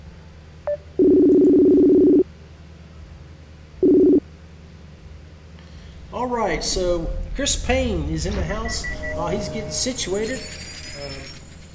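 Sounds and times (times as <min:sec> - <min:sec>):
telephone dialing tones placing a call: 0:01.0 - 0:02.2, 0:03.8 - 0:04.2
speech: 0:06.5 - 0:11.3.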